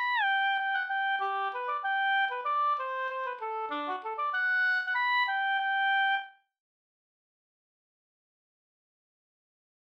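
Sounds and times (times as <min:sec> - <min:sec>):
polka music: 0:00.0 - 0:06.3.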